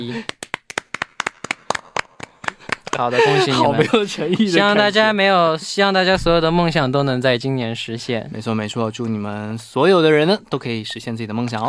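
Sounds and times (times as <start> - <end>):
speech: 0.0 - 0.4, 2.9 - 11.6
hand claps: 0.0 - 3.5
laughter: 2.4 - 5.1.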